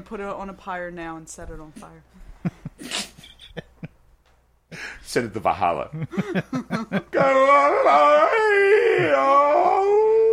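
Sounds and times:
speech: 0.0 - 3.0, 5.0 - 10.1
laughter: 2.4 - 4.0, 5.9 - 8.1
person imitating a howl at the moon: 7.1 - 10.3.

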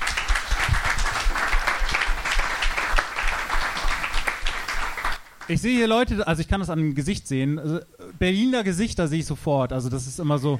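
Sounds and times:
live audience applause: 0.0 - 5.4
speech: 5.5 - 10.5.

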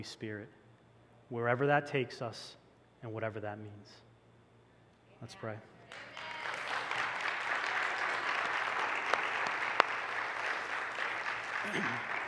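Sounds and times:
speech: 0.0 - 0.6, 1.3 - 4.0, 5.2 - 6.1, 11.7 - 12.2
audience applause: 5.9 - 12.2.

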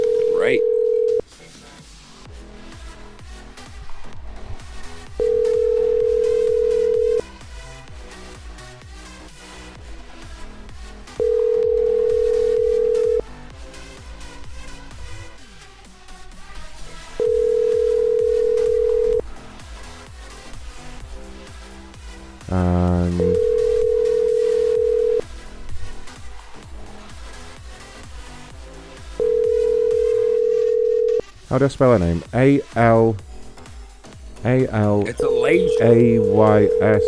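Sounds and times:
dialing tones: 0.0 - 1.2, 5.2 - 7.3, 11.2 - 13.3, 17.2 - 19.2, 22.5 - 25.2, 29.2 - 31.3, 35.2 - 37.0
telephone line tones: 0.0 - 1.2, 5.2 - 7.2, 11.2 - 13.2, 17.2 - 19.2, 23.0 - 25.2, 29.2 - 31.2, 35.2 - 37.0
speech: 0.5 - 0.7, 31.5 - 33.3, 34.4 - 37.0.

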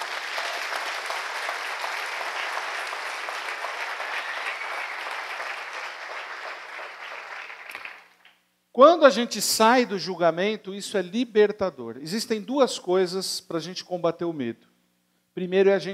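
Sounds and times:
crowd applauding: 0.0 - 8.3
speech: 8.8 - 14.7, 15.4 - 15.9.

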